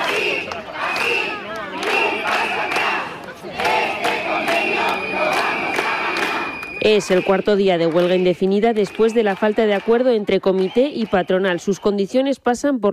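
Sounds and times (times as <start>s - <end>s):
protesters chanting slogan in street: 0.0s - 11.8s
speech: 6.8s - 12.9s.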